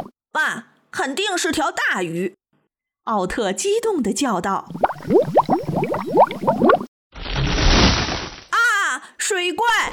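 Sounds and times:
speech: 0.4 - 2.4, 3.1 - 6.2, 9.3 - 9.9
bubbles rising to water surface: 4.7 - 8.1.

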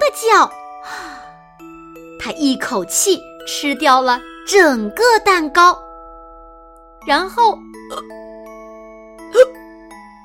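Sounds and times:
speech: 0.2 - 0.6, 2.2 - 5.8, 7.1 - 8.2
pig burping: 7.9 - 8.1.

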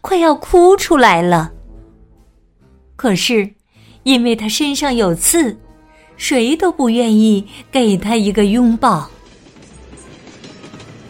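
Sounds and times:
speech: 0.1 - 1.6, 3.0 - 5.6, 6.2 - 9.2
train clattering on rails: 9.1 - 11.0.

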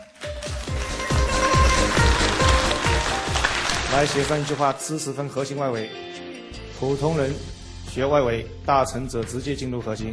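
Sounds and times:
audience applause: 0.3 - 4.8
speech: 4.0 - 6.1, 6.8 - 10.1.

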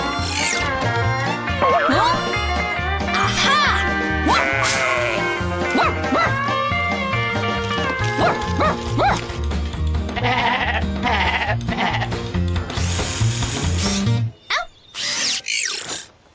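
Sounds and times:
busy music: 0.0 - 14.4
sheep bleating: 4.2 - 5.5, 10.1 - 12.2
power drill whirring: 12.7 - 14.1, 15.0 - 15.5.

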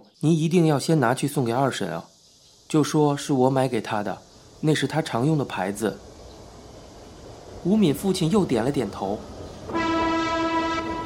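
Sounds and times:
speech: 0.2 - 2.1, 2.7 - 6.1, 7.6 - 9.3
train horn blast, a rich chord-like tone: 9.7 - 11.0.

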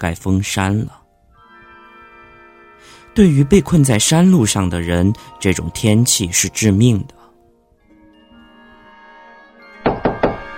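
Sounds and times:
speech: 0.0 - 1.0, 3.2 - 7.2
loud banging on a gate door: 9.8 - 10.5.

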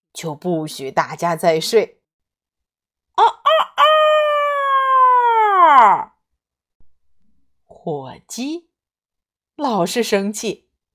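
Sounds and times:
speech: 0.2 - 2.0, 3.2 - 3.9, 5.7 - 6.1, 7.8 - 8.7, 9.6 - 10.6
rooster crowing: 3.4 - 5.4.

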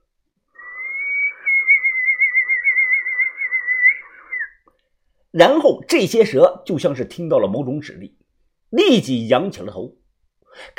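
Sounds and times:
long whistle: 0.6 - 4.6
speech: 5.4 - 10.0, 10.6 - 10.7.

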